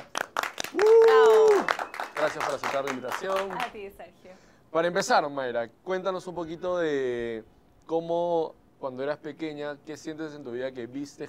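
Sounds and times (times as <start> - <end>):
scattered audience applause: 0.0 - 3.8
loud sustained vocal whoop or cheer: 0.7 - 1.7
speech: 2.2 - 11.2.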